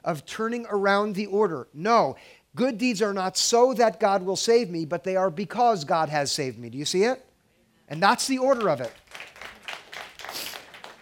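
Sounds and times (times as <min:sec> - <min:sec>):
speech: 0:00.0 - 0:07.3, 0:07.9 - 0:09.3
audience applause: 0:08.5 - 0:11.0.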